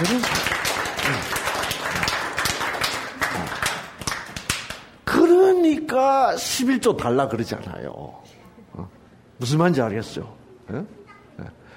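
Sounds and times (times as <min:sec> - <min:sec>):
audience clapping: 0:00.0 - 0:05.0
speech: 0:05.9 - 0:11.6.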